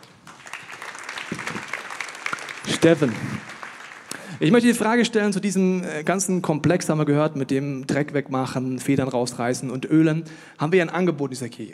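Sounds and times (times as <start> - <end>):
audience applause: 0.0 - 4.5
speech: 2.7 - 3.6, 4.4 - 11.7.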